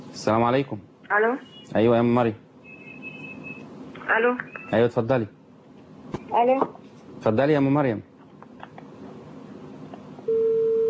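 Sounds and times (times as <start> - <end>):
faint noise: 0.0 - 10.8
speech: 0.2 - 2.4, 4.1 - 5.4, 6.3 - 8.1
telephone busy tone after a call is cut off: 10.3 - 10.8.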